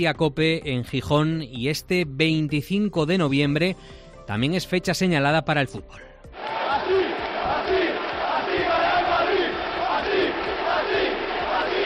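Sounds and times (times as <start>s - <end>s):
speech: 0.0s - 6.6s
Spanish football fans chanting: 6.3s - 11.8s.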